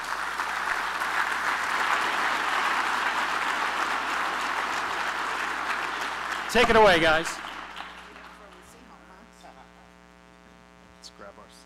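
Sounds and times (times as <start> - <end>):
crowd clapping: 0.0 - 9.2
speech: 6.5 - 7.4.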